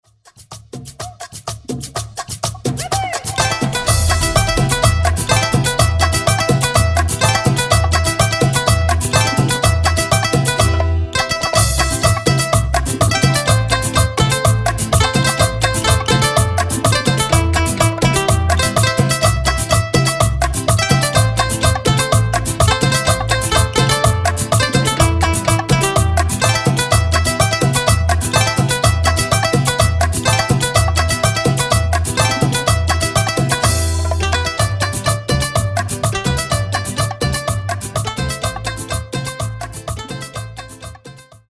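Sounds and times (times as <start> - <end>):
instrumental intro music at 125 BPM: 0.1 - 41.5.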